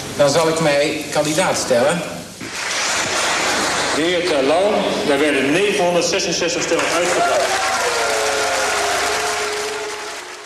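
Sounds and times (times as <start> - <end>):
speech: 0.2 - 2.2, 4.0 - 7.8
large crowd applauding: 2.4 - 4.5, 6.4 - 10.4
crowd booing: 6.8 - 10.4.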